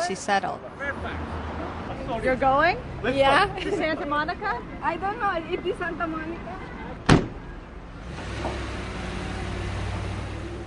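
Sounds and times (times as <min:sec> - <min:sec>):
speech: 0:00.1 - 0:01.2, 0:02.1 - 0:06.6
low steady engine rumble: 0:00.8 - 0:10.6
van door slamming shut: 0:07.0 - 0:07.4.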